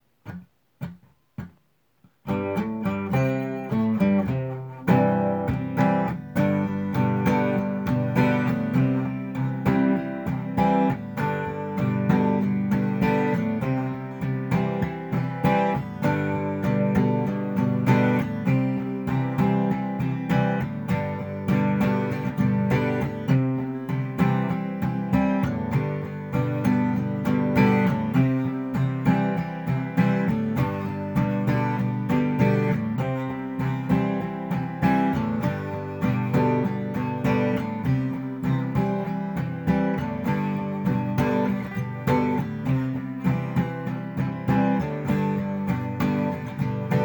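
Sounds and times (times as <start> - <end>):
acoustic music: 0.2 - 47.0.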